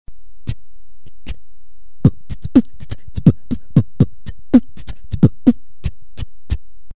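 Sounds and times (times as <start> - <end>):
hi-hat: 2.1 - 6.6.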